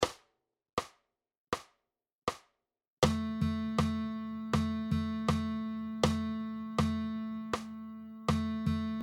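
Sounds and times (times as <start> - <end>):
guitar playing rhythm dictation exercises: 3.0 - 9.0.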